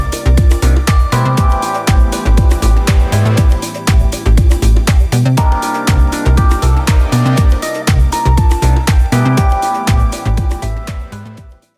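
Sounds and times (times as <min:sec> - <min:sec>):
deep house lounge background music: 0:00.0 - 0:11.7.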